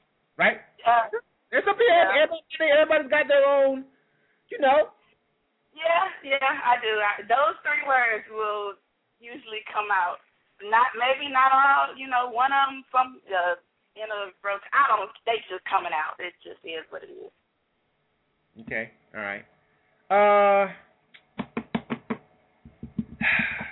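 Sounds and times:
speech: 0.4 - 3.9, 4.5 - 5.0, 5.8 - 17.4, 18.6 - 19.5, 20.1 - 20.9
knocking on something: 21.4 - 23.7.

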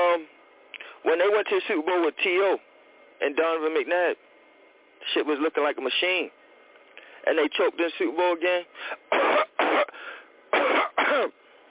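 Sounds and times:
speech: 1.1 - 4.3, 5.0 - 6.4, 7.2 - 9.2, 11.1 - 11.4
throat clearing: 9.1 - 11.4.

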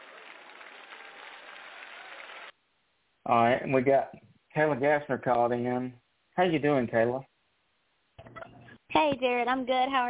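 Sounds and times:
applause on a radio call-in show: 0.0 - 2.5
speech: 3.2 - 7.3, 9.0 - 10.0.

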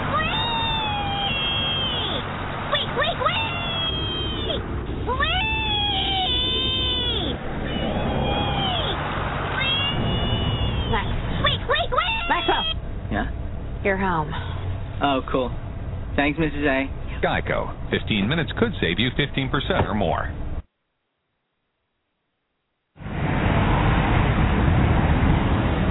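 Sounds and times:
piggy squealing wee wee wee: 0.0 - 12.8
steady rumble: 0.0 - 20.7, 23.0 - 25.8
speech: 13.9 - 15.6, 16.2 - 20.4.

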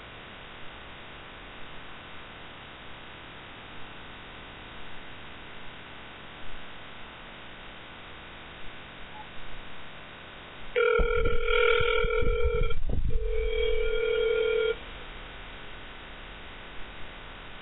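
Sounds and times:
telephone dial tone while placing call: 10.8 - 14.8.

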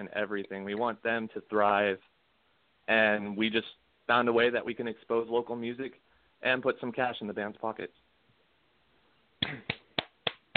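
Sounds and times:
speech: 0.0 - 2.2, 2.9 - 8.0, 9.4 - 9.7
faint hiss: 0.0 - 10.5
sharp hand claps: 9.4 - 10.5.

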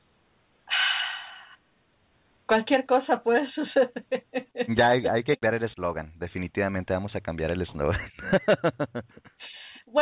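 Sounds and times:
deep breath: 0.7 - 1.6, 9.4 - 9.9
speech: 2.5 - 10.0.

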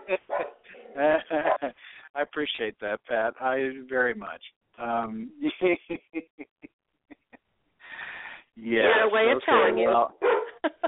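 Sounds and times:
dogs barking: 0.0 - 1.7, 8.8 - 10.6
laughter: 0.9 - 2.0, 5.2 - 7.4, 8.8 - 10.8
speech: 1.0 - 6.0, 8.6 - 10.3.

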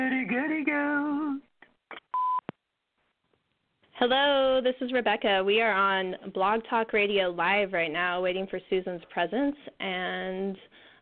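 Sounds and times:
speech: 0.3 - 1.5, 4.0 - 10.8
answering machine beep: 2.1 - 2.4.

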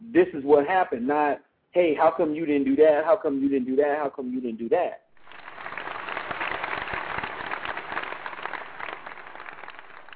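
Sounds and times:
speech: 0.1 - 5.0
audience applause: 5.2 - 10.1.

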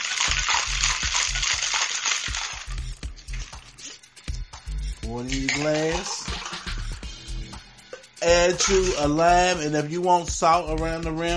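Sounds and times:
ice rattling in a cocktail shaker: 0.0 - 4.0, 5.0 - 7.1, 8.3 - 9.5
speech: 5.1 - 6.4, 8.2 - 11.3.

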